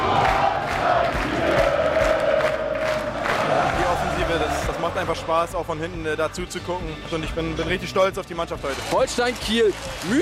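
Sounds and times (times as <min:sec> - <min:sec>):
Holstein Kiel fan block cheering: 0:00.0 - 0:05.6
speech: 0:05.0 - 0:10.2.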